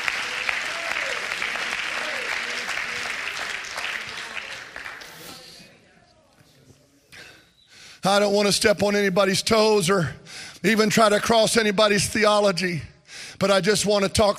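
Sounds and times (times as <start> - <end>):
audience clapping hands: 0.0 - 5.7
speech: 8.0 - 14.3.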